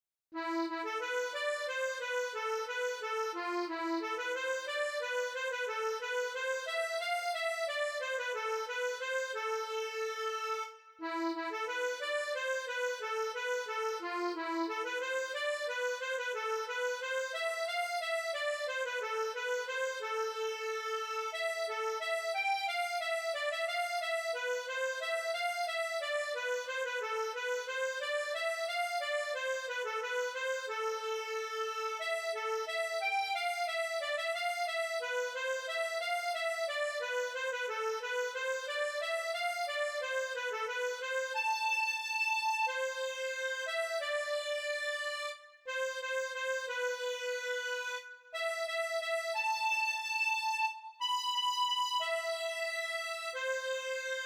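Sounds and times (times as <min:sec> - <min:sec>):
gavotte first voice: 0:00.4 - 0:54.2.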